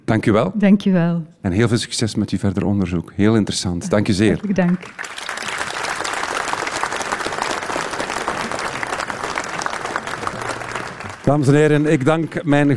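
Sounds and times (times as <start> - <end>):
speech: 0.1 - 5.2, 11.3 - 12.7
audience applause: 4.1 - 12.7.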